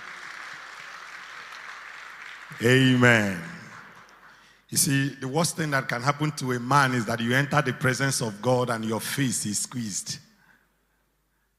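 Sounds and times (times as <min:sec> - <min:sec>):
audience clapping: 0:00.0 - 0:04.7
speech: 0:02.5 - 0:03.6, 0:04.7 - 0:10.3.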